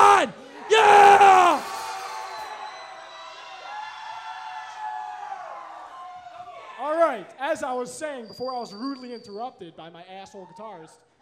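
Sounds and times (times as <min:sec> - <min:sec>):
live audience screaming and cheering: 0:00.0 - 0:06.8
speech: 0:07.6 - 0:11.1.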